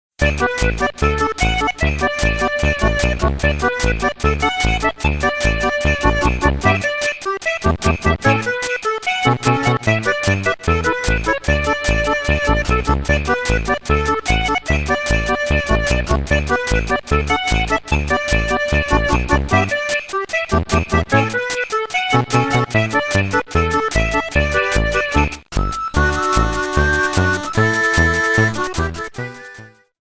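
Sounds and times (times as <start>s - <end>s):
music: 0.2s - 29.9s.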